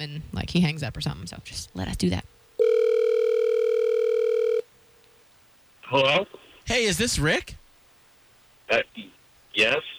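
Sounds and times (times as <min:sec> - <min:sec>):
speech: 0:00.0 - 0:02.4, 0:05.9 - 0:07.6, 0:08.7 - 0:09.9
telephone ringback tone on an outgoing call: 0:02.6 - 0:04.6.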